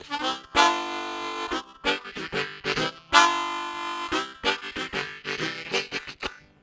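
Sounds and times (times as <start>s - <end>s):
harmonica: 0.0s - 6.6s
semi train bass: 0.0s - 6.6s.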